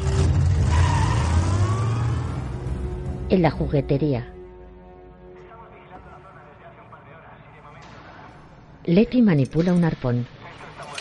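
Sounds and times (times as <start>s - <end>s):
car engine revving and pulling away: 0.0s - 3.2s
speech: 3.3s - 4.4s, 8.8s - 10.4s.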